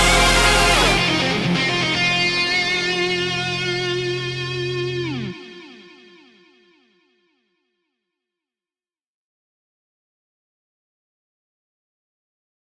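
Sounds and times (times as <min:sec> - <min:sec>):
instrumental music: 0:00.0 - 0:05.9.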